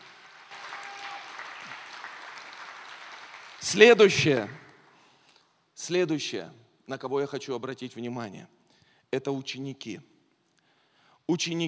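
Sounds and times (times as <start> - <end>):
large audience applause: 0.0 - 4.7
speech: 3.6 - 4.6, 5.8 - 10.1, 11.3 - 11.6.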